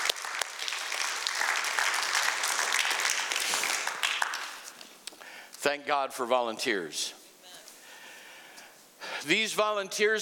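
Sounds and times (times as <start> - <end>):
church congregation applauding volunteers: 0.0 - 5.2
speech: 5.6 - 7.2, 9.2 - 10.1.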